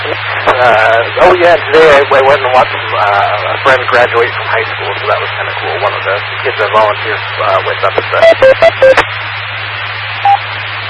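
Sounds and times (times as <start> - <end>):
low hum: 0.0 - 10.8
speech: 0.6 - 9.3
two-minute timer beeping: 8.2 - 9.0.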